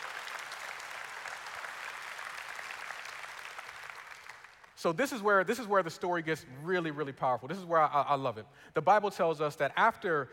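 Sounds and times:
audience clapping applause: 0:00.0 - 0:04.7
speech: 0:04.8 - 0:10.3.

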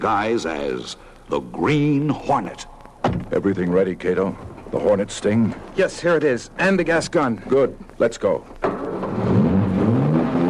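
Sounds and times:
speech: 0:00.0 - 0:08.8
car engine roaring to life and revving: 0:08.6 - 0:10.4.

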